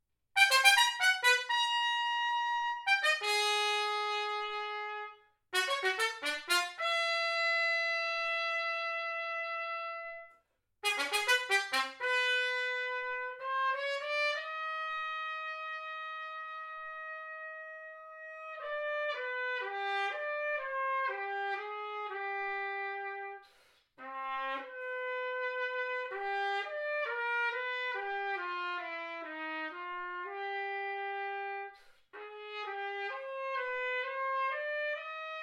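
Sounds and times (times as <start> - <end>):
all brass chord in C: 0.4 - 35.4.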